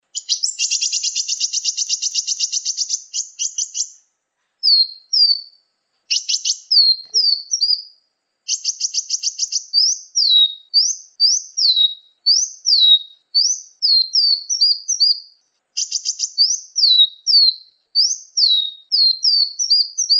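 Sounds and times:
sunbird chirping: 0:00.0 - 0:20.1.

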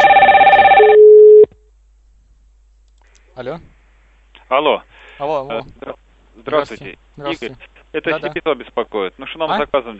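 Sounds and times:
telephone ringing: 0:00.0 - 0:01.5
speech: 0:03.4 - 0:03.8, 0:04.5 - 0:09.9.

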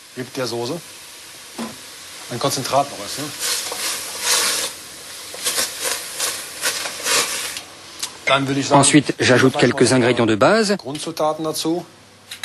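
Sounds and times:
concentrated tomato purée hitting a sizzling pan for a sauce: 0:00.0 - 0:10.0
speech: 0:00.2 - 0:01.0, 0:02.3 - 0:03.6, 0:08.3 - 0:12.0
scraping in a sizzling pan: 0:03.3 - 0:07.6.

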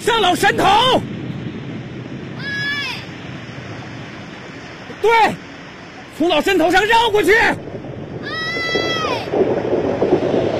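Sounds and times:
speech: 0:00.0 - 0:01.1, 0:05.0 - 0:05.4, 0:06.2 - 0:07.7
rushing water of a mountain flash flood as a radio drama effect: 0:00.0 - 0:10.5.

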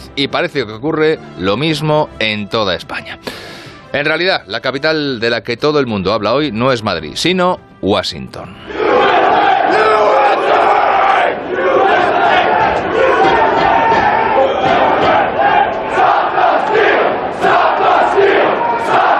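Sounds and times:
speech: 0:00.2 - 0:08.9
crowd of protesters shouting: 0:08.7 - 0:19.1.

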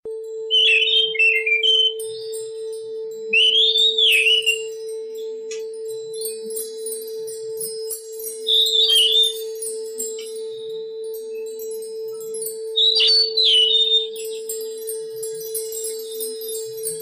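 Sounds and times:
Oriental magpie-robin song: 0:00.5 - 0:02.4, 0:03.3 - 0:05.0, 0:06.2 - 0:10.4, 0:11.4 - 0:16.9.

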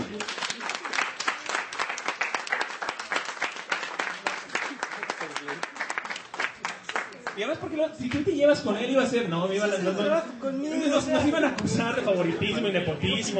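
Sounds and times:
crowd applauding: 0:00.0 - 0:07.6
speech: 0:07.4 - 0:13.3
laughter: 0:09.6 - 0:13.3.

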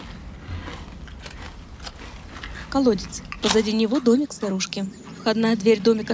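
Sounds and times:
crunching potato chips: 0:00.0 - 0:04.7
speech: 0:02.7 - 0:06.1.

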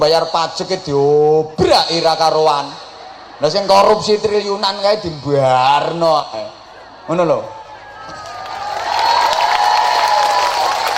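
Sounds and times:
speech: 0:00.0 - 0:02.8, 0:03.4 - 0:08.2
crowd applause and cheering: 0:06.8 - 0:10.9.

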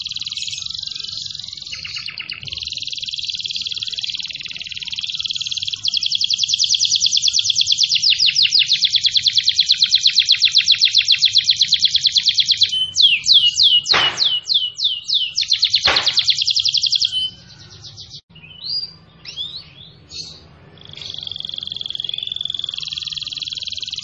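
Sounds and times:
domestic canary singing energetically: 0:00.0 - 0:24.0.

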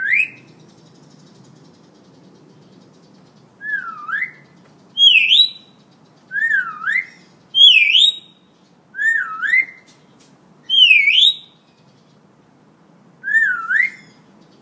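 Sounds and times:
Hill myna in full active song: 0:03.6 - 0:09.9, 0:10.7 - 0:11.5, 0:13.2 - 0:14.1.

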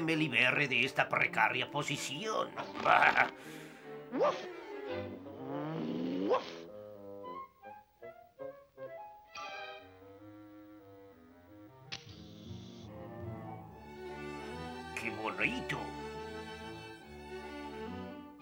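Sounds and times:
speech: 0:00.1 - 0:06.6, 0:15.4 - 0:16.0
dog yelping: 0:04.1 - 0:04.5.

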